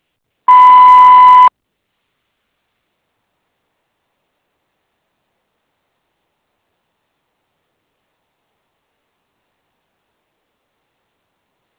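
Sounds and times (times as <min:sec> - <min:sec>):
voicemail beep tone: 0:00.5 - 0:01.5.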